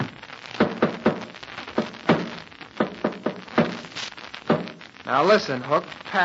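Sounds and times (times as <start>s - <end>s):
tapping Morse code against a wall: 0.6s - 3.8s
speech: 5.1s - 6.2s.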